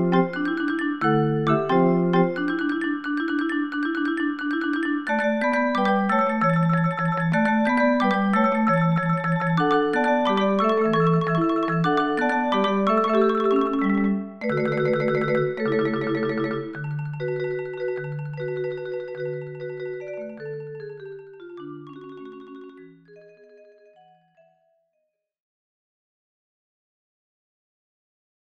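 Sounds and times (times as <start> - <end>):
percussion: 0.0 - 21.3.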